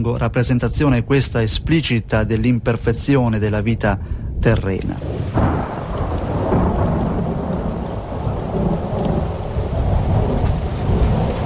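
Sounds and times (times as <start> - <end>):
speech: 0.0 - 5.5
deep rumbling thunder: 4.3 - 11.4
heavy downpour: 4.7 - 11.4.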